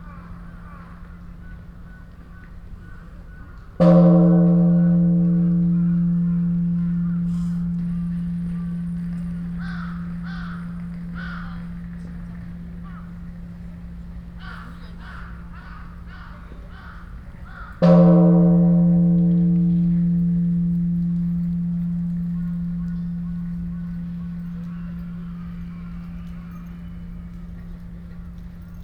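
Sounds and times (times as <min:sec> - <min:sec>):
bells of time ringing in Ueno: 0:03.8 - 0:14.9, 0:17.8 - 0:28.8.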